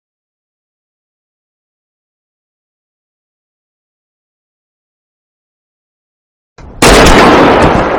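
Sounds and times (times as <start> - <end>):
gunshot: 6.8 - 7.9.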